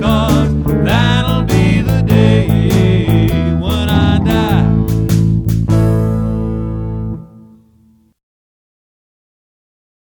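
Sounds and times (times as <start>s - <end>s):
fast rock shuffle: 0.0s - 6.6s.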